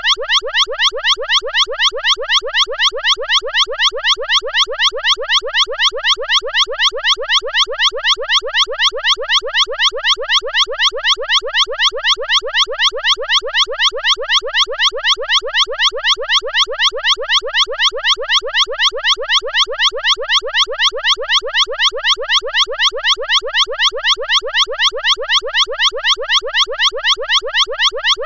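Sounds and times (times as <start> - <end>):
long emergency siren tone: 0.0 - 28.2.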